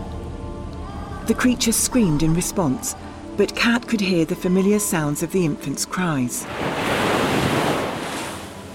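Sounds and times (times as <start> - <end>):
speech: 1.3 - 7.1
ocean wave crashing: 6.4 - 8.7.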